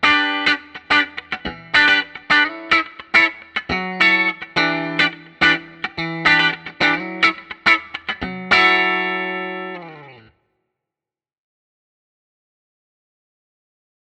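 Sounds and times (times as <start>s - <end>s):
clean funky electric guitar through guitar pickups: 0.0s - 10.4s.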